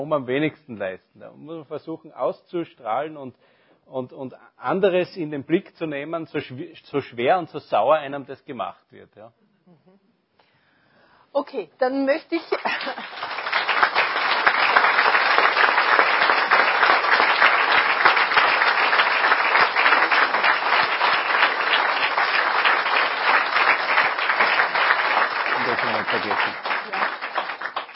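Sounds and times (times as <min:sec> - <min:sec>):
speech: 0:00.0 - 0:09.8, 0:11.3 - 0:13.3
audience applause: 0:12.5 - 0:27.9.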